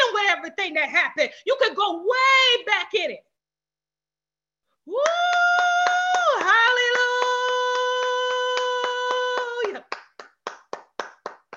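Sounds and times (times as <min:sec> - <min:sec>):
speech: 0:00.4 - 0:03.3, 0:04.8 - 0:05.6
congregation clapping hands: 0:05.0 - 0:11.5.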